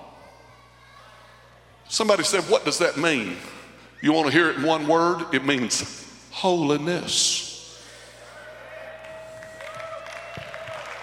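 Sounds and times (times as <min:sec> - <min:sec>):
low constant hum: 0:00.0 - 0:11.0
speech: 0:01.9 - 0:07.5
audience hand clapping: 0:09.0 - 0:11.0.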